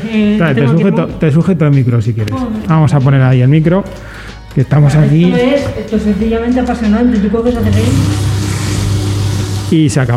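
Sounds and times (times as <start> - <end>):
speech: 0.1 - 8.3, 9.7 - 10.1
grinding machine running: 7.5 - 10.0.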